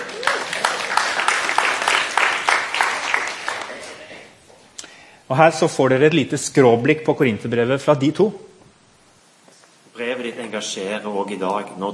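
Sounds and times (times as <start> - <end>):
applause: 0.0 - 4.0
speech: 5.3 - 8.5, 10.6 - 11.9.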